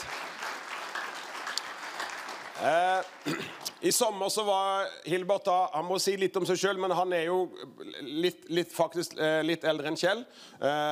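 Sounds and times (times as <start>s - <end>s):
audience applause: 0.0s - 3.8s
speech: 2.6s - 10.9s.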